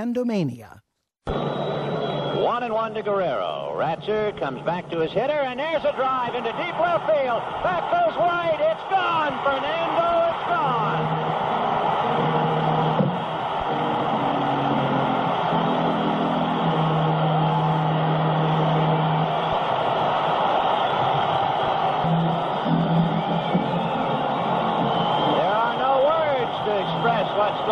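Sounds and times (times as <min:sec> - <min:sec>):
speech: 0:00.0 - 0:11.2
baseball crowd roaring and cheering: 0:01.3 - 0:27.7.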